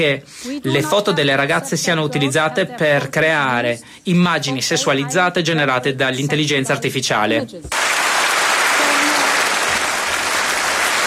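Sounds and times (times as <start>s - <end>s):
speech: 0.0s - 8.0s
applause in parliament: 7.7s - 11.0s.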